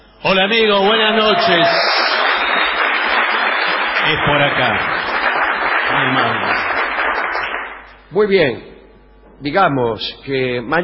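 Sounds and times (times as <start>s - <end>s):
speech: 0.2s - 2.0s, 4.1s - 5.0s, 5.9s - 6.7s, 8.1s - 8.7s, 9.4s - 10.8s
audience ovation welcoming a guest onto a television show in a warehouse venue: 0.9s - 7.9s.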